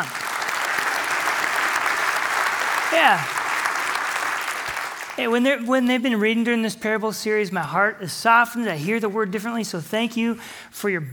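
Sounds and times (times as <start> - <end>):
audience applause: 0.0 - 5.4
speech: 2.9 - 3.4, 5.2 - 11.1.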